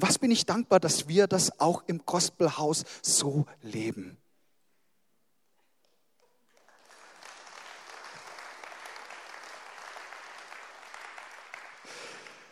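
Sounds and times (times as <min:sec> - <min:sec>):
speech: 0:00.0 - 0:04.2
audience applause: 0:06.5 - 0:12.5.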